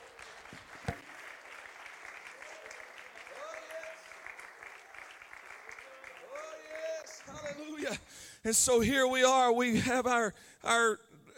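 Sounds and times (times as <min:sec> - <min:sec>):
audience clapping hands: 0:00.0 - 0:07.8
speech: 0:07.9 - 0:11.1.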